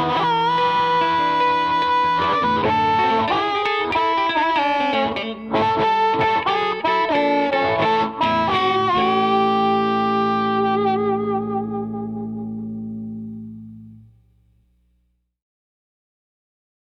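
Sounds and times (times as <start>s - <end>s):
harmonica playing a march: 0.0s - 12.3s.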